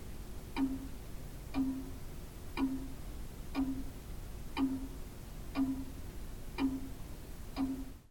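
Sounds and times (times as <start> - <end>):
bouncing longcase clock mechanism at the clockmaker's museum: 0.6 - 2.0, 2.6 - 3.9, 4.6 - 6.0, 6.6 - 7.0, 7.6 - 8.0.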